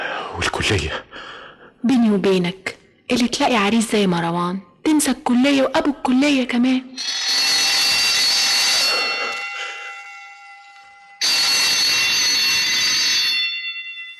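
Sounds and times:
speech: 0:00.4 - 0:07.3
loud electric school exam bell ringing: 0:07.0 - 0:14.1.

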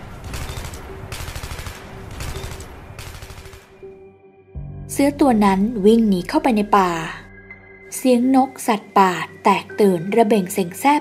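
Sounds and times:
gunfire barrage: 0:00.0 - 0:03.8
speech: 0:05.0 - 0:07.2, 0:08.0 - 0:10.9.

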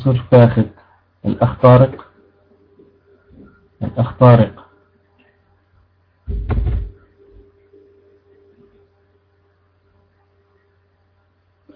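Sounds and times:
speech: 0:00.0 - 0:02.1, 0:03.8 - 0:04.6
low steady hum: 0:00.0 - 0:11.7
room door opened as someone leaves: 0:06.3 - 0:07.0.

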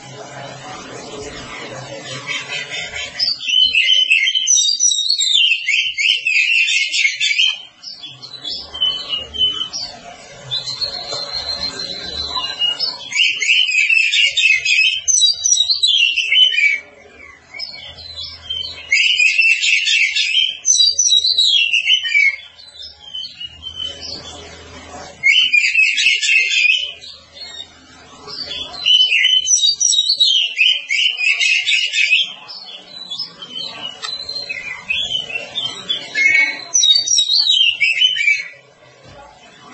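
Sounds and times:
Oriental magpie-robin song: 0:00.0 - 0:38.8.

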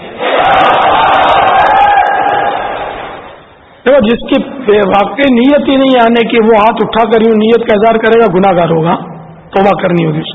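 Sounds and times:
crowd at a religious gathering shouting the slogan Insha'Allah in unison: 0:00.1 - 0:03.0
speech: 0:03.9 - 0:10.3.

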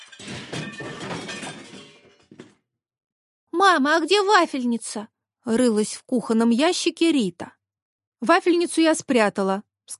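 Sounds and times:
dishes clattering down and breaking: 0:00.0 - 0:02.6
speech: 0:03.6 - 0:07.6, 0:08.2 - 0:09.9.

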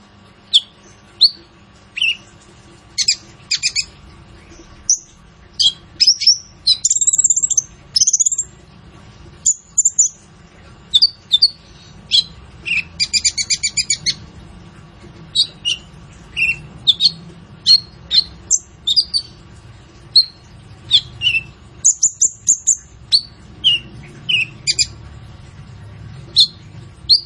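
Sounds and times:
purple-throated sunbird song: 0:03.0 - 0:08.5, 0:09.4 - 0:10.2, 0:10.9 - 0:14.2, 0:15.3 - 0:19.4, 0:20.1 - 0:25.0, 0:26.3 - 0:27.2.

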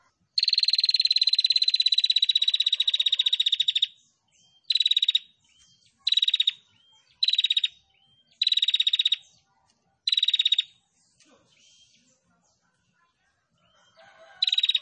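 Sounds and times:
female prinia singing rattling trills: 0:00.4 - 0:04.0, 0:04.6 - 0:09.2, 0:10.0 - 0:10.7, 0:13.8 - 0:14.7.

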